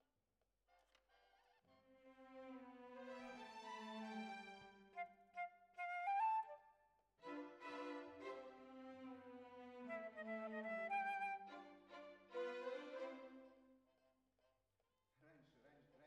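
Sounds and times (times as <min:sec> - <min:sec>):
flute: 0:03.8 - 0:08.9, 0:09.5 - 0:13.4.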